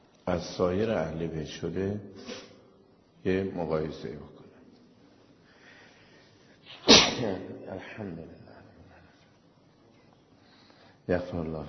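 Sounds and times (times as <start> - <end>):
speech: 0.3 - 2.4, 3.2 - 4.4, 7.2 - 8.4, 11.1 - 11.6
sneeze: 2.2 - 2.6, 6.6 - 7.5.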